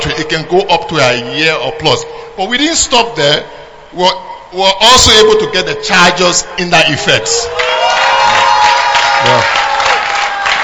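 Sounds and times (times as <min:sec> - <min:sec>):
speech: 0:00.2 - 0:08.4, 0:09.2 - 0:09.6
audience clapping: 0:07.6 - 0:10.6.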